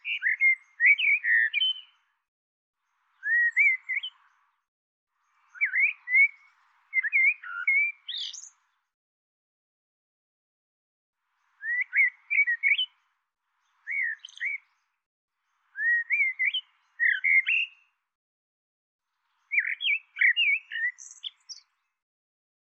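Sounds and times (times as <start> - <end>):
bird twittering chirps: 0.0 - 2.1, 3.1 - 4.5, 5.2 - 8.7, 11.5 - 13.0, 13.6 - 14.9, 15.6 - 17.8, 19.3 - 21.7.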